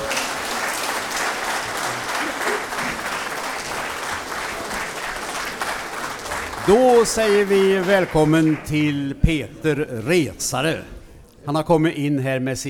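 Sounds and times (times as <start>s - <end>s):
audience applause: 0.0s - 9.0s
speech: 6.7s - 12.6s.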